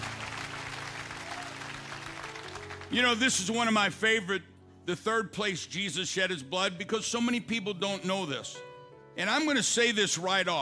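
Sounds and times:
audience clapping at a church service: 0.0s - 3.1s
speech: 2.9s - 10.6s.

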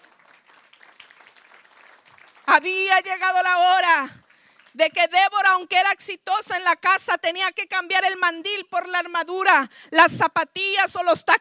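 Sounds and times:
audience clapping hands: 0.0s - 5.0s
speech: 2.6s - 4.2s, 4.8s - 11.4s.

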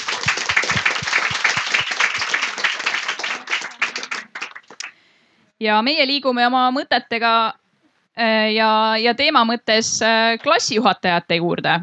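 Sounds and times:
crowd clapping: 0.0s - 5.0s
speech: 5.6s - 7.6s, 8.2s - 11.8s.

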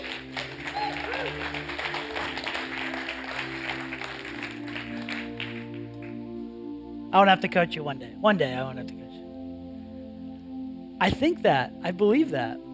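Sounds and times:
crowd applauding and cheering: 0.0s - 6.3s
sustained musical tones: 0.0s - 12.7s
speech: 7.1s - 9.0s, 11.0s - 12.6s.

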